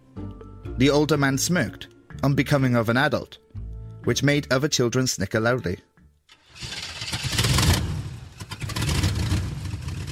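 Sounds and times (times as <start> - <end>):
speech: 0.8 - 3.4, 4.0 - 5.9
truck engine driving away: 6.3 - 10.1.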